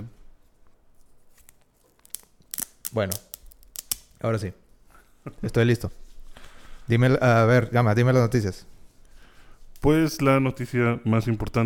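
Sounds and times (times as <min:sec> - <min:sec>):
velcro being pulled apart: 0:01.0 - 0:04.2
speech: 0:02.9 - 0:03.3, 0:04.2 - 0:04.6, 0:05.2 - 0:06.0, 0:06.9 - 0:08.7, 0:09.8 - 0:11.6.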